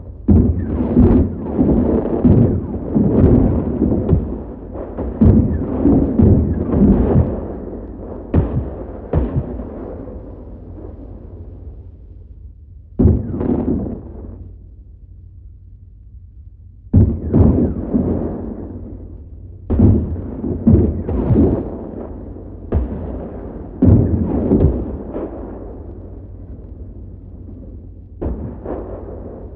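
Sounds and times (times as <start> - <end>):
destruction ambience: 0.0 - 29.5.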